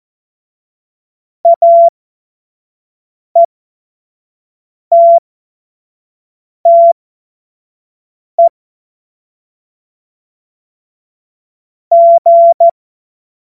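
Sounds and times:
Morse code course tones: 0:01.5 - 0:01.9, 0:04.9 - 0:05.2, 0:06.7 - 0:07.0, 0:11.9 - 0:12.7.

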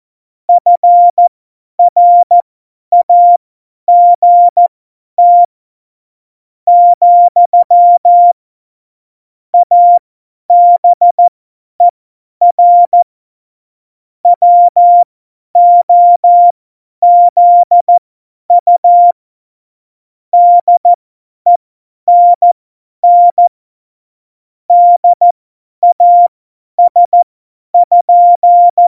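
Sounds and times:
CW Morse code beeps: 0:00.6 - 0:05.5, 0:06.7 - 0:08.4, 0:09.6 - 0:11.9, 0:12.5 - 0:13.0, 0:14.3 - 0:18.0, 0:18.6 - 0:19.2, 0:20.4 - 0:23.5, 0:24.7 - 0:27.2, 0:27.8 - 0:28.8.

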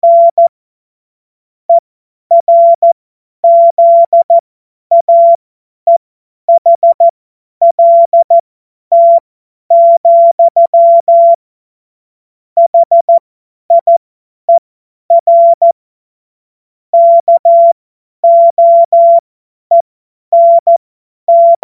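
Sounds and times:
CW Morse code beeps: 0:00.0 - 0:00.5, 0:02.3 - 0:11.4, 0:12.6 - 0:14.0, 0:15.1 - 0:15.8, 0:17.0 - 0:19.8, 0:20.4 - 0:21.6.

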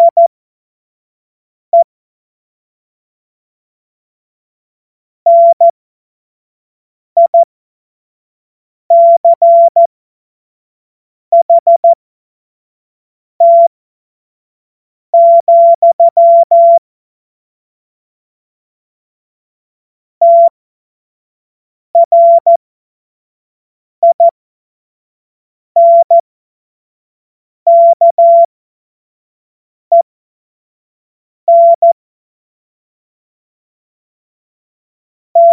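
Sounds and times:
CW morse code beeps: 0:00.0 - 0:00.2, 0:05.3 - 0:05.7, 0:07.2 - 0:07.5, 0:08.9 - 0:09.9, 0:11.3 - 0:12.0, 0:13.4 - 0:13.7, 0:15.2 - 0:16.8, 0:20.2 - 0:20.6, 0:22.0 - 0:22.6, 0:24.0 - 0:24.3, 0:25.8 - 0:26.2, 0:27.7 - 0:28.5, 0:31.5 - 0:32.0.

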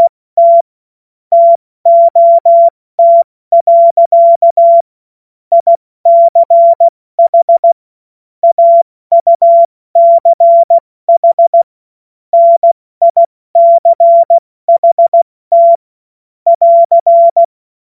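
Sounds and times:
morse code CW: 0:01.3 - 0:04.8, 0:05.5 - 0:07.8, 0:08.4 - 0:11.7, 0:12.4 - 0:15.8, 0:16.5 - 0:17.5.

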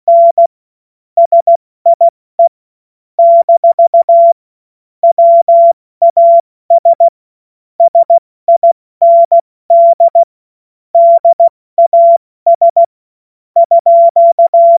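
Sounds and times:
CW Morse code beeps: 0:00.0 - 0:00.5, 0:01.2 - 0:02.5, 0:03.2 - 0:04.4, 0:05.0 - 0:07.1, 0:07.8 - 0:10.3, 0:11.0 - 0:12.9, 0:13.6 - 0:14.7.

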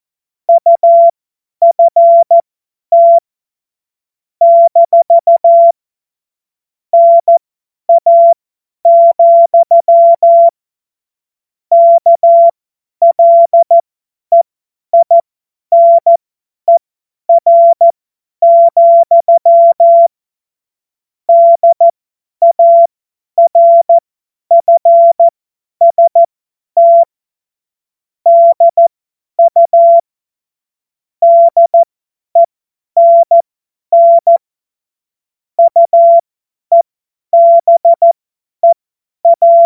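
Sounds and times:
CW Morse code beeps: 0:00.5 - 0:03.2, 0:04.4 - 0:05.8, 0:07.0 - 0:10.5, 0:11.7 - 0:14.4, 0:15.0 - 0:20.1, 0:21.3 - 0:27.1, 0:28.3 - 0:30.0, 0:31.2 - 0:33.4, 0:34.0 - 0:34.4, 0:35.6 - 0:36.8, 0:37.4 - 0:39.6.

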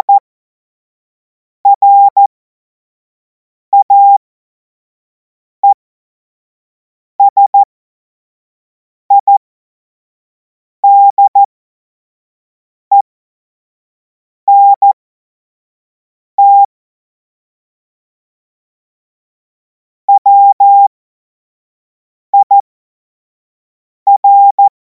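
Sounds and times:
CW Morse code beeps: 0:01.7 - 0:02.2, 0:03.8 - 0:04.2, 0:07.2 - 0:07.7, 0:09.1 - 0:09.4, 0:10.8 - 0:11.5, 0:14.5 - 0:15.0, 0:16.4 - 0:16.7, 0:20.2 - 0:20.9, 0:22.4 - 0:22.6, 0:24.1 - 0:24.7.

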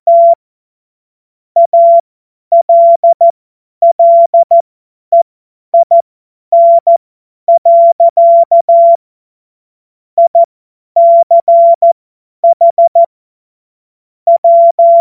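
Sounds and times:
Morse code course tones: 0:00.1 - 0:00.4, 0:01.6 - 0:05.2, 0:05.8 - 0:09.0, 0:10.2 - 0:13.1, 0:14.3 - 0:15.0.

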